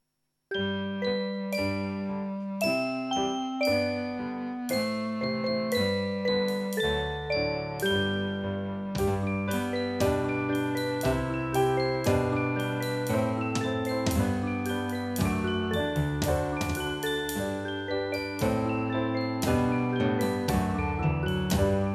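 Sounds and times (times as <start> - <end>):
instrumental music: 0.5 - 21.9.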